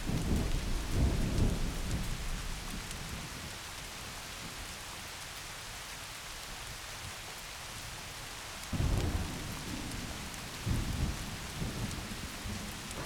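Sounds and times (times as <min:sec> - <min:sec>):
thunderstorm: 0:00.0 - 0:03.2, 0:08.8 - 0:13.0.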